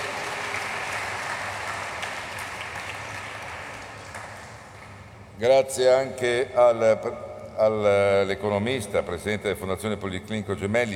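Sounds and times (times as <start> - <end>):
audience applause: 0.0 - 4.6
speech: 5.4 - 10.9.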